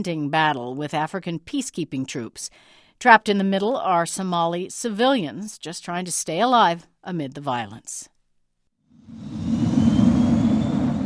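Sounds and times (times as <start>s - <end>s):
speech: 0.0s - 8.1s, 9.0s - 9.7s
passenger jet descending towards runway: 9.0s - 11.0s.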